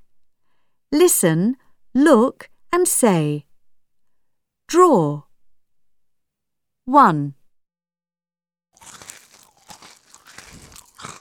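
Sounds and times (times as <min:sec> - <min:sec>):
speech: 0:00.9 - 0:03.5, 0:04.7 - 0:05.2, 0:06.9 - 0:07.4
noisy open-mouthed chewing of crunchy food: 0:08.8 - 0:11.1.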